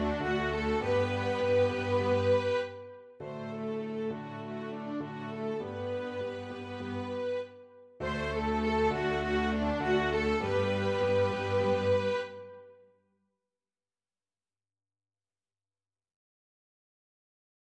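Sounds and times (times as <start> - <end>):
strings playing a raging rumba: 0.0 - 12.6.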